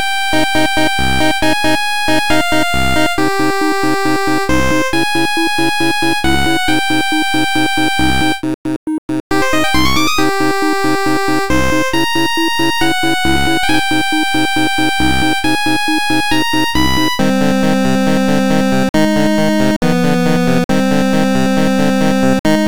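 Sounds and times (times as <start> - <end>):
8-bit battle music loop: 0.0 - 22.6.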